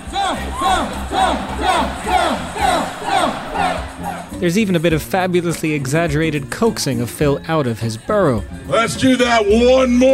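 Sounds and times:
large crowd chanting in unison at Groundhog Day celebration: 0:00.0 - 0:04.4
speech: 0:04.4 - 0:10.1.

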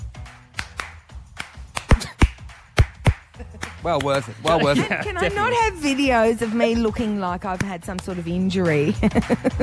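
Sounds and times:
hand claps: 0:00.1 - 0:04.6, 0:07.4 - 0:08.5
laughter: 0:03.4 - 0:05.8, 0:08.8 - 0:09.6
speech: 0:03.4 - 0:09.6.

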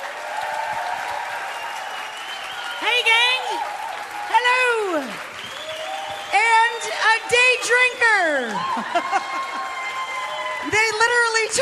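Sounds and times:
studio audience applause welcoming Rachel Ray on stage: 0:00.0 - 0:11.6
speech: 0:04.3 - 0:05.3, 0:06.4 - 0:09.8, 0:10.6 - 0:11.6
laughter: 0:08.5 - 0:10.0.

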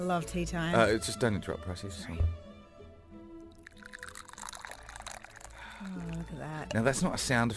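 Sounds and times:
speech: 0:00.0 - 0:02.4, 0:05.8 - 0:07.5
tea poured clumsily: 0:03.4 - 0:07.5.

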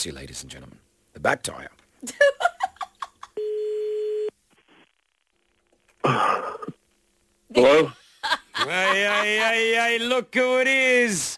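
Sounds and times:
speech: 0:00.0 - 0:02.4, 0:06.0 - 0:06.6, 0:07.6 - 0:08.0, 0:08.6 - 0:11.3
telephone ringback tone while calling: 0:03.4 - 0:04.3
laughter: 0:08.1 - 0:09.7.

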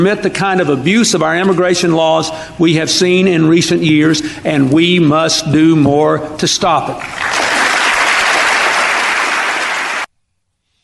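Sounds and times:
speech: 0:00.0 - 0:07.4
audience applause: 0:07.0 - 0:10.1.

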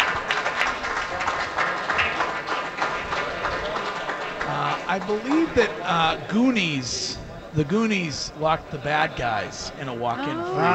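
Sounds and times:
audience applause: 0:00.0 - 0:06.1
speech: 0:05.0 - 0:10.7.

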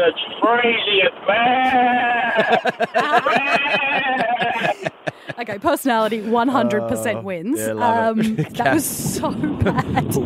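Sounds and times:
speech: 0:00.0 - 0:10.2
lambs bleating while being carted in a vehicle down a country road: 0:01.4 - 0:02.5
laughter: 0:01.7 - 0:10.2.

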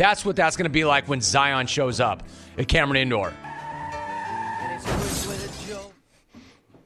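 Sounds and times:
speech: 0:00.0 - 0:03.5
debris rattling: 0:04.8 - 0:06.0
glass shattering as a car smashes through a house window: 0:04.8 - 0:06.0.

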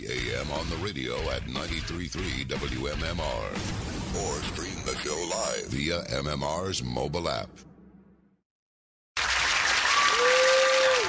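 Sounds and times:
speech: 0:00.3 - 0:07.7
live studio applause: 0:09.2 - 0:11.0.

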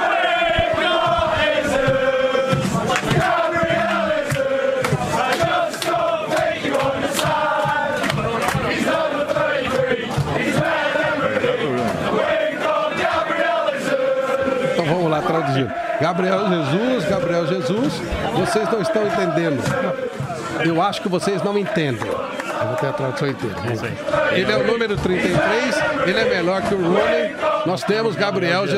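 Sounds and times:
football supporters singing a chant: 0:00.0 - 0:28.7
speech: 0:15.6 - 0:28.7.

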